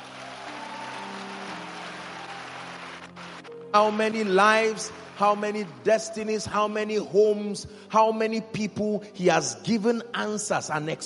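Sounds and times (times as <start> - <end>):
audience clapping: 0.0 - 6.6
speech: 3.7 - 11.0.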